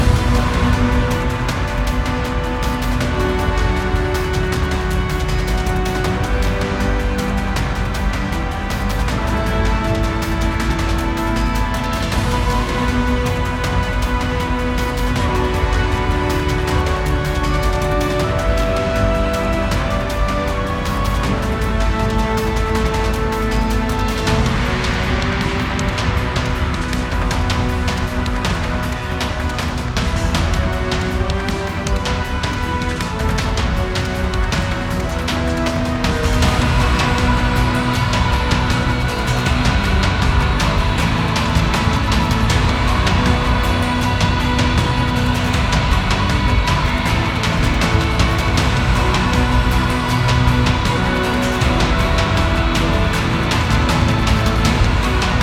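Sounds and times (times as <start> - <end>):
battle music: 0.0 - 55.4.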